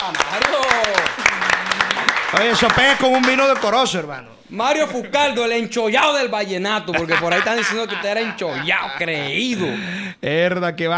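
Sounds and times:
applause: 0:00.0 - 0:03.9
speech: 0:02.3 - 0:10.9
laughter: 0:06.9 - 0:10.0.

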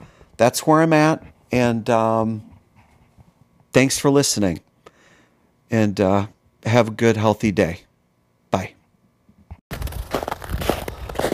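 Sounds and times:
speech: 0:00.4 - 0:02.5, 0:03.7 - 0:04.6, 0:05.7 - 0:07.9, 0:08.5 - 0:08.8
footsteps crunching in snow: 0:09.7 - 0:11.3.

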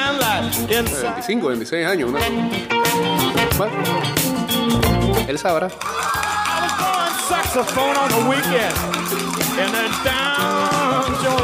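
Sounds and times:
speech: 0:00.5 - 0:06.2, 0:07.3 - 0:11.4
large crowd cheering and shouting: 0:05.7 - 0:11.4.

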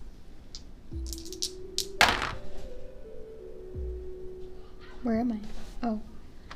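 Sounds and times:
dice rolled during a board game: 0:01.1 - 0:01.5
speech: 0:05.0 - 0:06.1.

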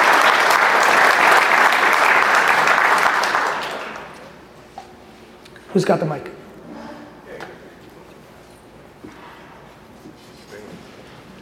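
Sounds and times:
audience applause: 0:00.0 - 0:04.3
speech: 0:05.8 - 0:06.4.

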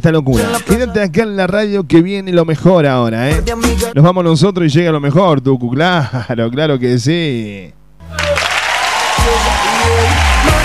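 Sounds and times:
speech: 0:00.0 - 0:08.3
crowd applauding: 0:08.1 - 0:10.6.

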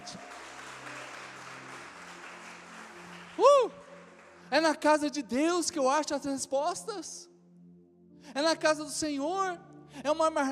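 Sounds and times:
audience applauding loudly: 0:00.0 - 0:04.8
speech: 0:04.5 - 0:07.3, 0:08.4 - 0:10.5.

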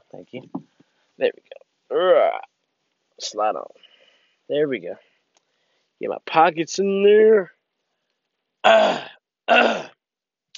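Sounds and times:
speech: 0:00.1 - 0:02.5, 0:03.2 - 0:03.9, 0:04.5 - 0:05.1, 0:06.0 - 0:07.6, 0:08.6 - 0:09.8
throat clearing: 0:08.7 - 0:10.0.

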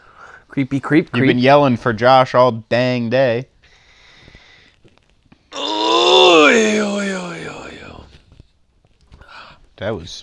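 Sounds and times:
speech: 0:00.5 - 0:03.5, 0:09.8 - 0:10.2
person groaning while stretching: 0:05.5 - 0:08.1.

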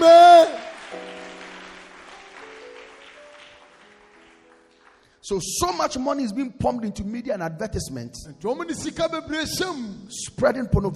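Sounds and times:
audience shouting amen: 0:00.0 - 0:00.9
audience clapping hands: 0:00.0 - 0:05.4
speech: 0:05.3 - 0:10.9.

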